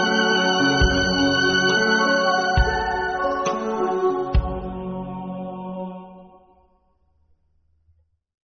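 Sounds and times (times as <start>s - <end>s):
violin ensemble playing: 0.0s - 5.0s.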